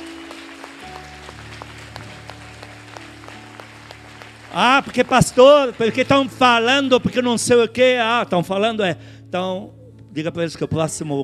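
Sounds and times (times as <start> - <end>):
audience applauding with both hands: 0.0 - 7.6
speech: 4.5 - 11.2.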